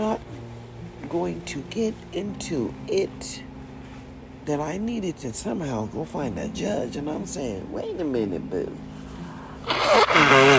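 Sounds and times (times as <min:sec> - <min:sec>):
speech: 0:01.1 - 0:03.5, 0:04.5 - 0:08.9
nose blowing from allergies: 0:09.6 - 0:10.5.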